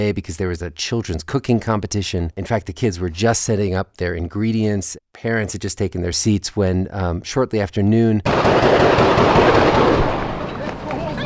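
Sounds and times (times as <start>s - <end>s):
speech: 0.0s - 10.2s
AK-47 gunfire in a shopping mall: 8.3s - 10.8s.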